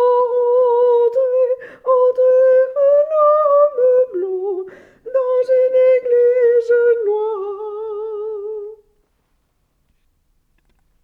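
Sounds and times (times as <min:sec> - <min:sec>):
soprano voices: 0:00.0 - 0:08.8.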